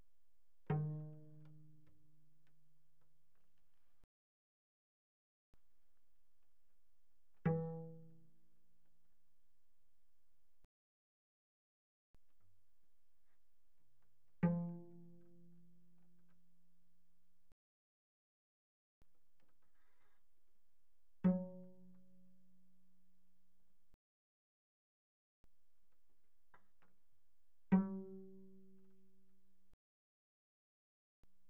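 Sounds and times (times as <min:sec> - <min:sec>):
cello pizzicato on G string mezzo-forte: 0:00.6 - 0:02.6, 0:07.3 - 0:09.0, 0:14.2 - 0:16.9, 0:21.1 - 0:22.8, 0:27.6 - 0:29.4.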